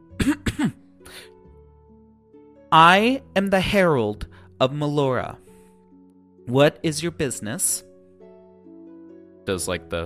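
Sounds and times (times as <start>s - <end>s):
player clearing throat in character during a tabletop role-playing game: 0.2s - 0.8s
speech: 0.2s - 0.8s, 2.7s - 5.4s, 6.5s - 7.9s, 9.5s - 10.0s.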